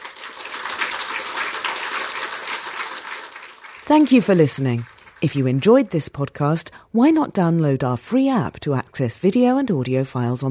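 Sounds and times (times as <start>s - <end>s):
audience applauding a guest speaker at an RSA event: 0.0s - 5.6s
speech: 3.9s - 10.5s.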